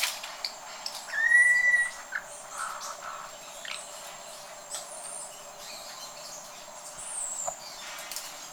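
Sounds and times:
Campo troupial whistled calls: 0:01.1 - 0:02.0.

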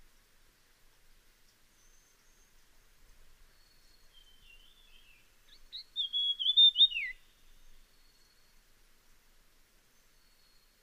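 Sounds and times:
Dusky fulvetta high whistle: 0:05.7 - 0:07.3.

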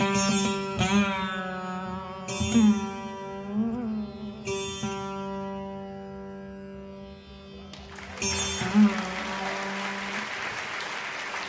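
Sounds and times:
veena playing: 0:00.0 - 0:11.4.

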